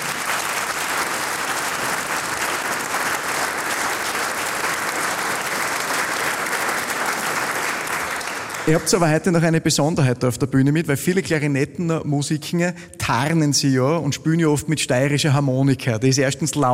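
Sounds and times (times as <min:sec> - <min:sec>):
audience applause: 0:00.0 - 0:09.4
speech: 0:08.7 - 0:16.7.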